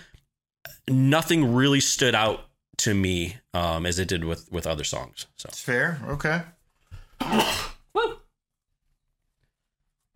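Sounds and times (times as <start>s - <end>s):
speech: 0.8s - 6.6s, 7.2s - 8.2s
sneeze: 7.2s - 8.2s.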